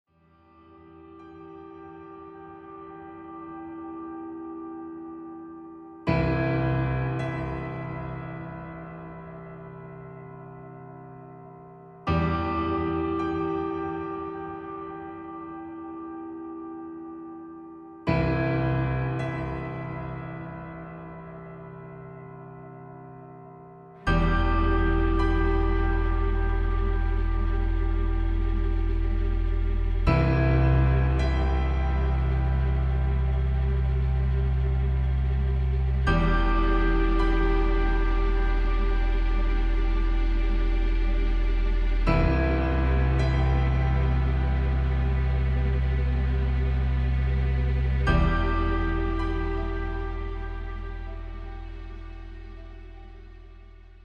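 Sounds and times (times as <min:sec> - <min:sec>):
ambient film music: 0:00.4 - 0:54.0.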